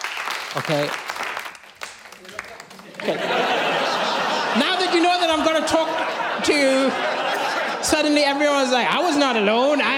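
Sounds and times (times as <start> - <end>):
audience clapping: 0.0 - 4.2
speech: 0.5 - 1.1, 3.0 - 3.5, 7.9 - 9.9
laughter: 2.7 - 9.9.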